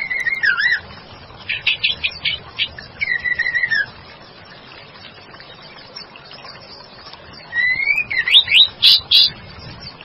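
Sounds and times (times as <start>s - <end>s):
White-rumped shama song: 0.0s - 0.8s, 1.5s - 3.9s, 7.4s - 9.4s.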